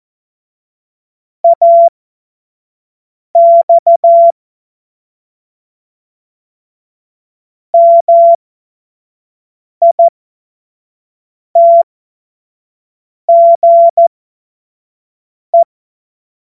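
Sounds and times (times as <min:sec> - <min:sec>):
Morse code tones: 0:01.5 - 0:01.9, 0:03.4 - 0:04.3, 0:07.8 - 0:08.4, 0:11.6 - 0:11.8, 0:13.3 - 0:14.1.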